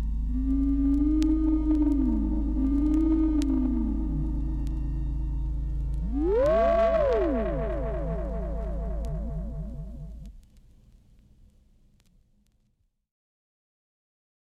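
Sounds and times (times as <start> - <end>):
science fiction sound effects of intergalactic enemies: 0.2 - 10.3.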